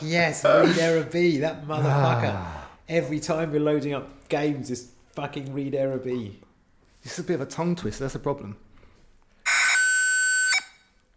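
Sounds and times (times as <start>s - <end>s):
speech: 0.0s - 8.6s
old modem screech: 9.5s - 10.8s.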